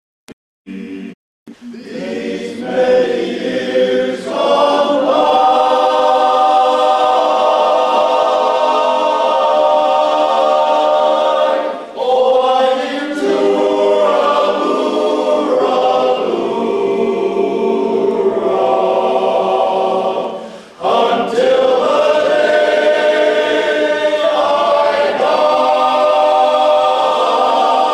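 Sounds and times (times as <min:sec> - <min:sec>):
demo sung chorus: 0:00.7 - 0:27.9.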